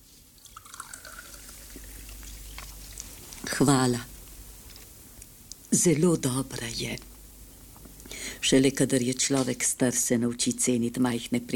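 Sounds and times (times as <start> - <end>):
soda fizzing: 0.0 - 3.6
soda pouring into a glass: 0.3 - 3.0
drips: 0.4 - 3.1
speech: 3.6 - 4.1, 5.7 - 7.1, 8.4 - 11.5.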